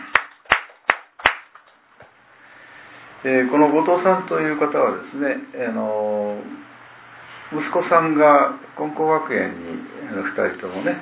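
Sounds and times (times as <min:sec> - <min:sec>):
audience clapping in unison: 0:00.0 - 0:01.8
speech: 0:03.2 - 0:06.6, 0:07.5 - 0:11.0.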